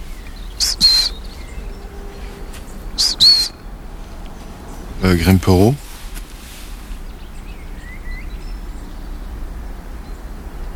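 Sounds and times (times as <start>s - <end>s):
long-tailed tit giving thin high trilling calls: 0.0s - 8.4s
steady low hiss: 0.0s - 10.7s
speech: 5.0s - 5.8s.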